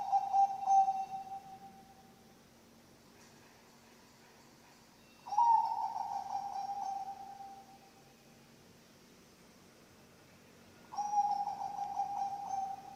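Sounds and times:
Zebra dove cooing: 0.0 - 1.8, 5.3 - 7.7, 10.9 - 12.9.

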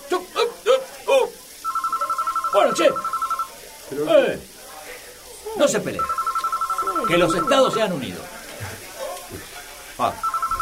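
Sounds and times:
telephone ringing with high-pitched electronic pulses: 1.6 - 3.7, 5.9 - 8.2, 10.2 - 10.6
speech: 2.6 - 3.1, 3.9 - 4.5, 5.6 - 6.2, 7.0 - 8.3, 10.0 - 10.2.

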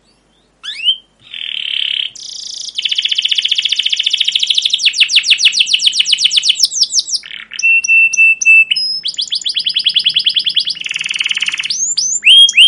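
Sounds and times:
canary song: 0.0 - 12.6.

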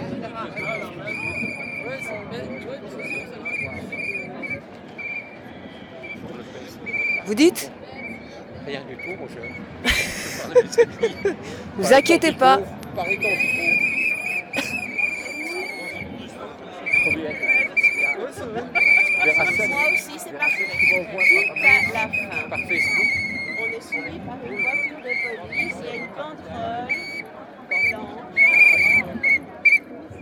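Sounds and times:
whistles being blown: 0.6 - 6.2, 13.0 - 16.1, 16.8 - 18.2, 18.8 - 26.2, 26.8 - 30.0
speech: 7.3 - 7.8, 8.7 - 13.9, 18.4 - 23.2, 23.9 - 27.1
laughter: 9.8 - 12.6, 14.6 - 16.0.

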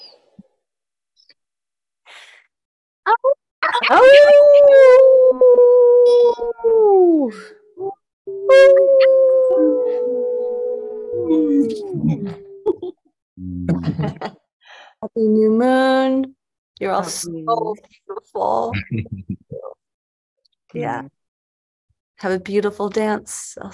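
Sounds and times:
people on a group call howling like wolves: 3.7 - 12.7
speech: 3.9 - 4.8, 6.6 - 7.6, 15.2 - 19.4, 20.7 - 21.2, 22.2 - 23.7
laughter: 13.6 - 14.4, 18.7 - 19.7.

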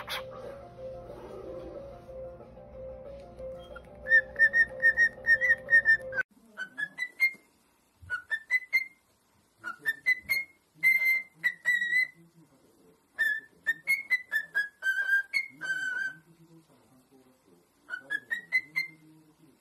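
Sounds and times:
cockatiel whistling: 0.0 - 0.3, 3.6 - 7.4, 8.0 - 9.0, 9.6 - 12.2, 13.2 - 16.2, 17.9 - 19.0.

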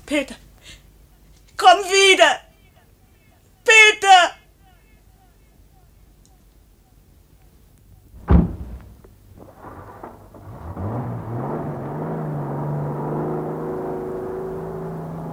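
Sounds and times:
speech: 0.1 - 0.8, 1.6 - 2.4
car engine humming with a low whine: 8.1 - 15.3
car door slamming: 8.2 - 12.6.

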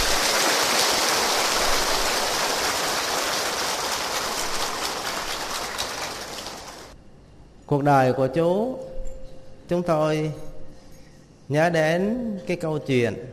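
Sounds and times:
loud applause: 0.0 - 7.0
speech: 7.7 - 8.9, 9.7 - 10.5, 11.5 - 13.3.

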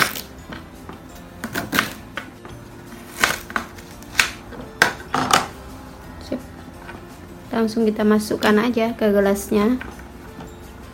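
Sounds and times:
fresh ginger being chopped into pieces with a knife: 1.4 - 5.1
speech: 7.6 - 10.0.

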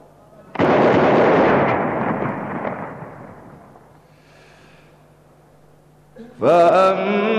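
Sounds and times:
Ramadan imsak cannon firing in Cairo: 0.5 - 4.0
speech: 6.4 - 7.2.

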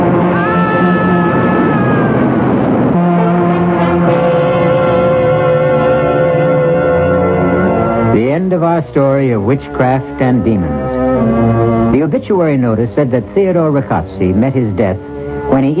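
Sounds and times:
express train rushing past: 0.0 - 8.2
speech: 8.8 - 15.7.

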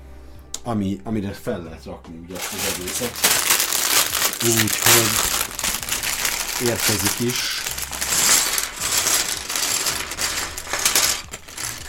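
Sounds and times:
speech: 0.6 - 3.5, 4.4 - 5.4, 6.6 - 7.6
plastic building-kit bag crinkling: 2.4 - 11.8
small building-kit pieces rattling: 2.4 - 11.8.

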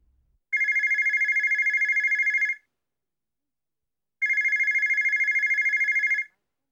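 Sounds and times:
mobile phone ringing: 0.6 - 2.5, 4.2 - 6.2.

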